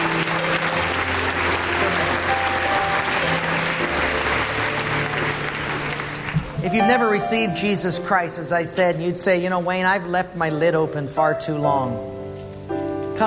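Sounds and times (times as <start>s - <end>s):
church congregation applauding families who dedicated their babies: 0.0s - 8.2s
speech: 6.7s - 12.1s.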